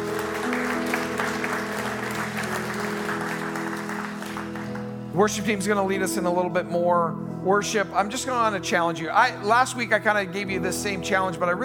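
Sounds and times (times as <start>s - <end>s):
audience applause: 0.0s - 5.1s
soft sustained musical tones: 0.0s - 11.6s
speech: 5.2s - 11.6s.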